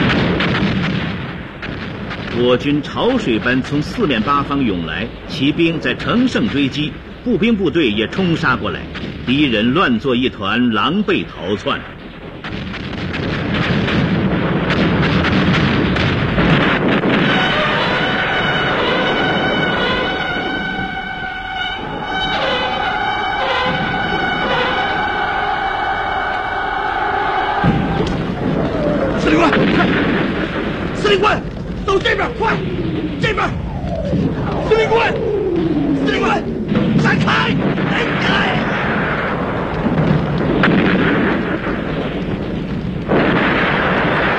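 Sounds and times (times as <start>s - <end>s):
heavy artillery explosions in battle: 0.0s - 44.3s
speech: 2.4s - 11.9s
sustained shouting voices: 22.0s - 30.1s, 35.9s - 38.8s.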